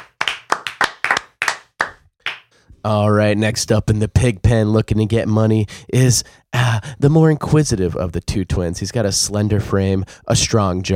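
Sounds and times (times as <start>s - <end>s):
audience clapping rhythmically: 0.0s - 2.6s
speech: 2.8s - 10.9s.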